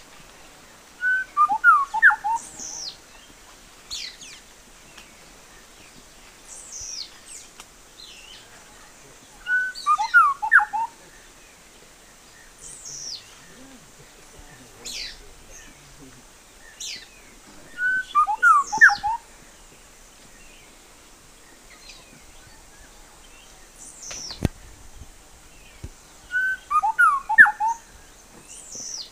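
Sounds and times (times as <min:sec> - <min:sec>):
steady background hiss: 0:00.0 - 0:29.1
bird whistled calls: 0:01.0 - 0:02.9, 0:09.4 - 0:11.0, 0:16.8 - 0:19.3, 0:26.3 - 0:27.8.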